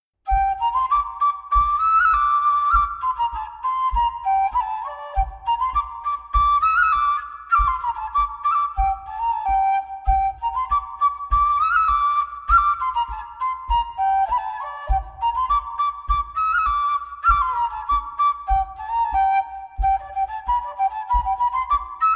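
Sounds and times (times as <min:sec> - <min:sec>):
folk dance tune: 0:00.3 - 0:22.1.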